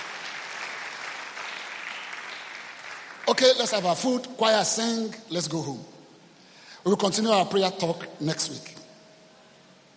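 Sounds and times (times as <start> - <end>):
crowd clapping: 0.0 - 3.8
speech: 3.3 - 6.0, 6.8 - 8.8.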